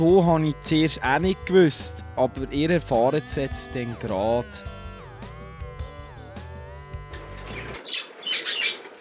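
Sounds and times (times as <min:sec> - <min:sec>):
speech: 0:00.0 - 0:05.3
canaries chirping: 0:07.2 - 0:08.9.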